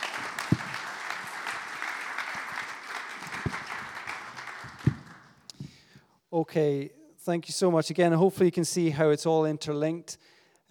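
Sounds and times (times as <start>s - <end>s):
audience applause: 0.0s - 5.4s
speech: 6.3s - 10.7s.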